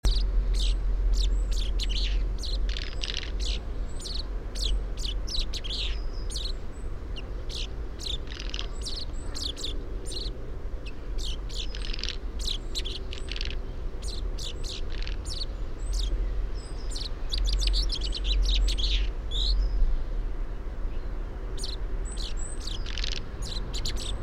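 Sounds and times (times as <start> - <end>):
common chaffinch Fringilla coelebs calls: 0.0 - 19.8, 21.0 - 24.2.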